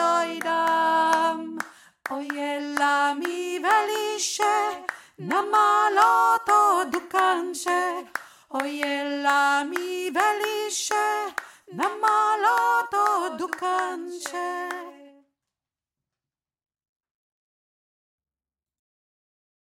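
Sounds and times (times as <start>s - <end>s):
high voice singing: 0.0s - 15.2s.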